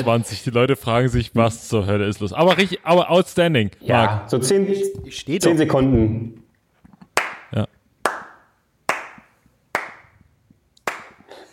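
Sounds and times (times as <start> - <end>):
speech: 0.0 - 6.4
slow sparse clapping: 7.0 - 11.3.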